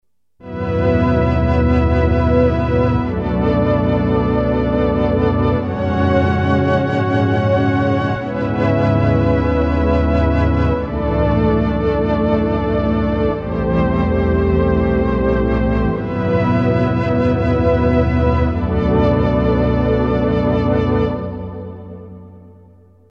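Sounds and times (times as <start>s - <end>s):
Korg M1R synthesizer: 0.4s - 23.0s.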